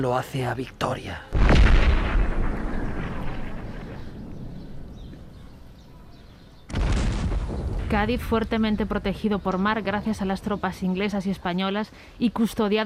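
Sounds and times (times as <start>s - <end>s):
speech: 0.0s - 1.4s, 7.9s - 12.8s
cannon fire during a siege: 1.3s - 5.4s, 6.6s - 9.1s.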